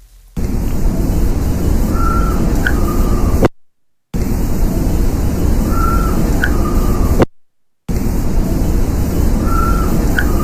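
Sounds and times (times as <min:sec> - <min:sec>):
constant heavy hiss: 0:00.0 - 0:03.5, 0:04.2 - 0:07.3, 0:07.9 - 0:10.4
faint wavering night bird call: 0:00.7 - 0:03.5, 0:04.6 - 0:07.3, 0:08.4 - 0:10.4.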